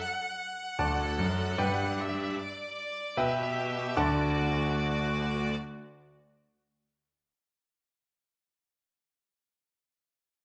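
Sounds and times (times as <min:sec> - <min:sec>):
piano quartet playing: 0:00.8 - 0:06.0.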